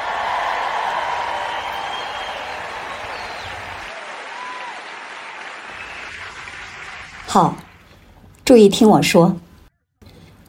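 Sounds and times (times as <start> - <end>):
audience cheering and applauding: 0.0 - 8.2
speech: 7.3 - 7.6, 8.5 - 9.4.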